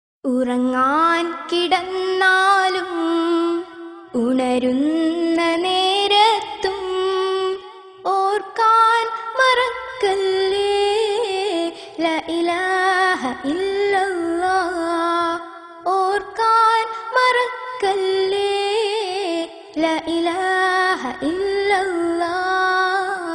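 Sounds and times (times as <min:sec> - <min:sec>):
islamic song: 0:00.3 - 0:23.3.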